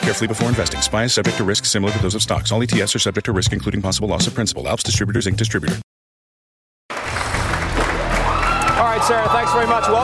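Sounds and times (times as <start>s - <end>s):
speech: 0.1s - 5.9s, 9.0s - 10.0s
crowd cheering and clapping at market close: 6.9s - 10.0s.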